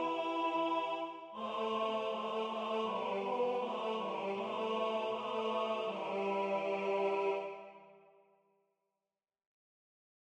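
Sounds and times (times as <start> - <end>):
tenor singing: 0.0 - 7.8.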